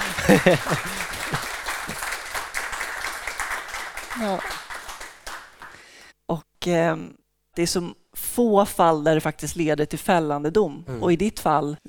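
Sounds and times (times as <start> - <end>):
laughter: 0.0 - 2.9
cheering voices: 0.0 - 5.8
audience applause: 0.0 - 5.9
speech: 0.3 - 1.1, 4.2 - 4.6, 6.3 - 11.8.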